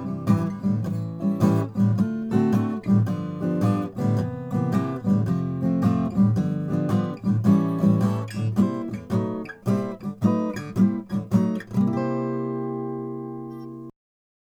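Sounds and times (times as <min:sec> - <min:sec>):
Martin 000 28EC Indian rosewood guitar: 0:00.0 - 0:14.0.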